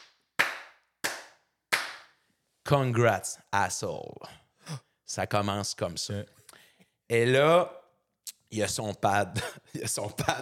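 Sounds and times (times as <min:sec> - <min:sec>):
sharp loud hand claps: 0:00.0 - 0:02.2
speech: 0:02.6 - 0:06.4, 0:07.1 - 0:07.8, 0:08.5 - 0:10.3.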